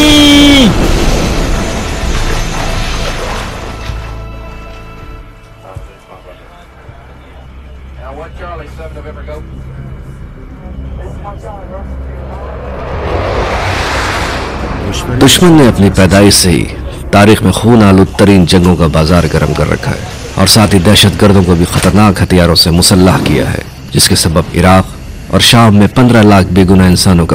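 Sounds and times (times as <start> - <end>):
loud explosion from a stricken aircraft: 0.0 - 3.7, 12.2 - 16.4
speech: 15.2 - 27.3.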